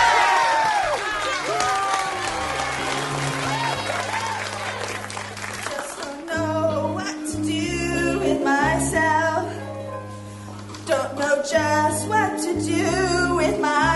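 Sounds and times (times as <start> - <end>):
cheers and scattered shouts: 0.0 - 5.7
crowd applause: 0.0 - 6.2
sustained music chords: 2.2 - 13.9.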